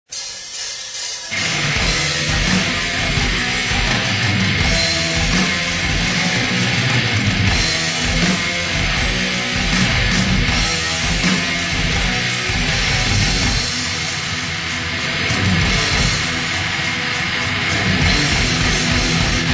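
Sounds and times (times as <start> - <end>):
Viking folk metal music: 0.1 - 19.5.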